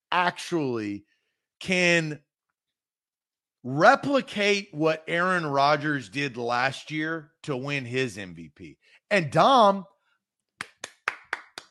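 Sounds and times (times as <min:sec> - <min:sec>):
speech: 0:00.1 - 0:02.3, 0:03.6 - 0:09.9
soft golf clap: 0:10.6 - 0:11.7.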